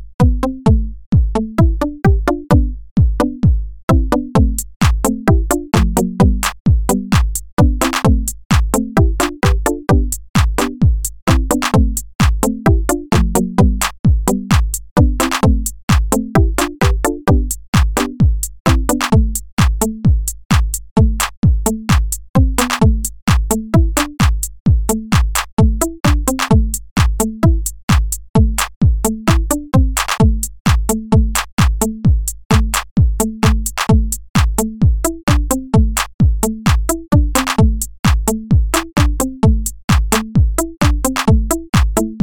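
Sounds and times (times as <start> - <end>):
reggae music: 0.3 - 42.2.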